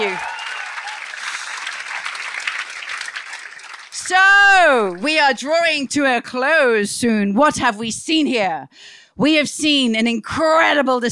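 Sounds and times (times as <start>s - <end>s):
audience applause: 0.0s - 5.1s
speech: 4.1s - 11.0s.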